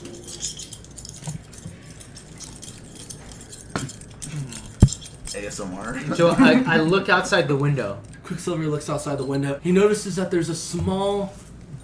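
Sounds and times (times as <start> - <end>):
rattling silverware: 0.0 - 6.6
speech: 5.4 - 11.8.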